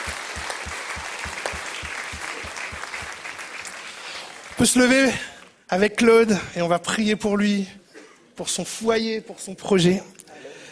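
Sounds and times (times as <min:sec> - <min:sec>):
audience applause: 0:00.0 - 0:05.1
speech: 0:04.6 - 0:07.8, 0:08.4 - 0:10.2.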